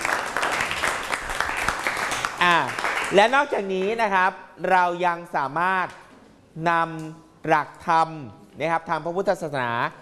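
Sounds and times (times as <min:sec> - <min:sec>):
classroom applause: 0:00.0 - 0:03.4
speech: 0:03.1 - 0:06.0, 0:06.6 - 0:10.0.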